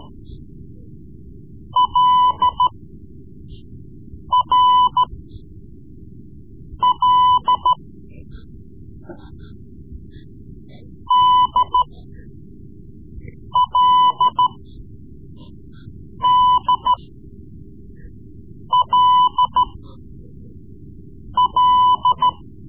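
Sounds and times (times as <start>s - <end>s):
Morse code lessons: 1.8s - 2.7s, 4.3s - 5.1s, 6.8s - 7.8s, 11.1s - 11.9s, 13.6s - 14.6s, 16.2s - 17.0s, 18.7s - 19.8s, 21.4s - 22.4s.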